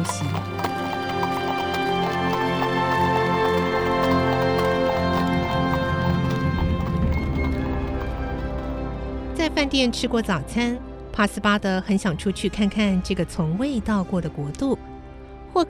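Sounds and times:
horse-drawn carriage hooves clip-clopping: 0.0s - 9.4s
speech: 9.6s - 14.8s.

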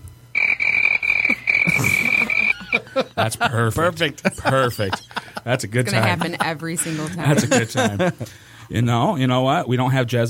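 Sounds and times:
cricket-chirping sound effect: 0.4s - 3.0s
laughter: 1.3s - 8.4s
speech: 3.0s - 10.2s.

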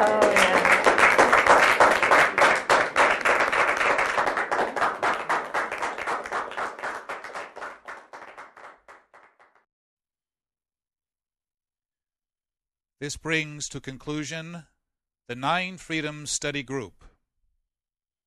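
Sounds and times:
group clapping: 0.0s - 9.7s
speech: 13.0s - 14.7s, 15.3s - 17.1s.

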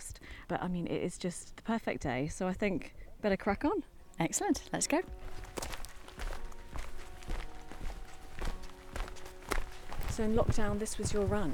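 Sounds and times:
outdoor sounds: 0.0s - 11.5s
speech: 0.5s - 5.7s, 10.2s - 11.5s
footsteps walking around a lake: 5.0s - 11.5s.

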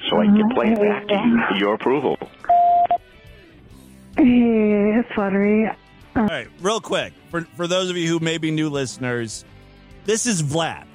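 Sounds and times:
speech: 0.2s - 2.5s, 4.2s - 10.9s
voicemail recording beep: 2.5s - 3.0s.

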